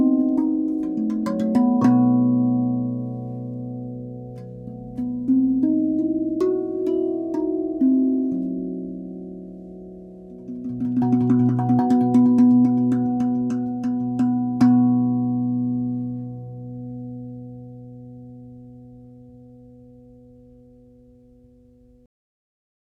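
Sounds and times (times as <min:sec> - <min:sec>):
RAV Vast steel tongue drum in Hijaz B flat: 0:00.0 - 0:22.0.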